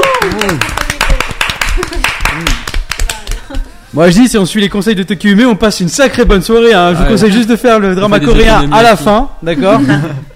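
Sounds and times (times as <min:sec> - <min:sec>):
audience applauding: 0:00.0 - 0:03.4
speech: 0:04.0 - 0:10.3
laughter: 0:09.5 - 0:10.3.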